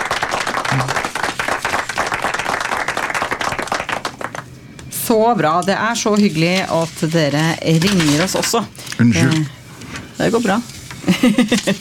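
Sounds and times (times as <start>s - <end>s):
applause: 0.0s - 4.5s
speech: 5.1s - 9.6s, 10.2s - 11.7s.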